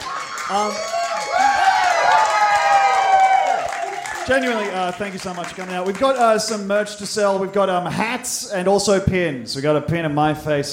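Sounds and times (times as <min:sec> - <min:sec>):
live crowd cheering and whooping: 0:00.0 - 0:05.0
clapping: 0:00.0 - 0:07.6
speech: 0:00.5 - 0:01.4, 0:04.3 - 0:10.7.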